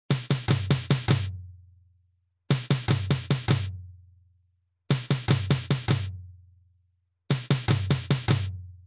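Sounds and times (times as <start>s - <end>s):
medium surdo drum: 0.1s - 1.4s, 2.5s - 3.8s, 4.9s - 6.2s, 7.3s - 8.6s.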